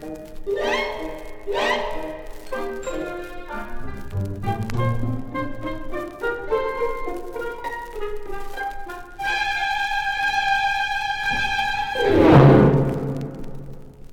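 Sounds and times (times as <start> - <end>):
symphonic orchestra playing: 0.5 - 7.0, 9.3 - 13.8.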